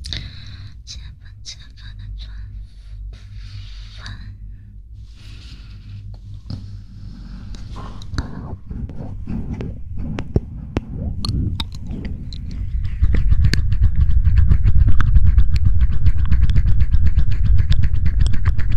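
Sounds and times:
low rumbling hum: 0.0s - 18.7s
close wet mouth clicks, smacks and chewing-like noises: 7.6s - 18.7s.

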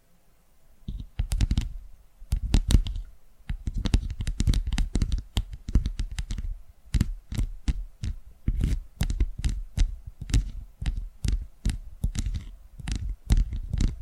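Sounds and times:
tapping: 0.9s - 14.0s.

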